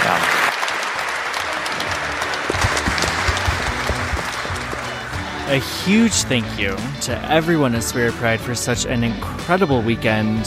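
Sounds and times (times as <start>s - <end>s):
large audience applause: 0.0s - 7.0s
speech: 5.5s - 10.4s.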